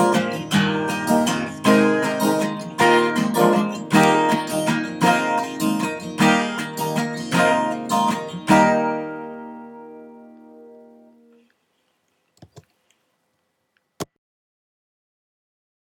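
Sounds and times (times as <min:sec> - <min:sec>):
guitar: 0:00.0 - 0:11.5.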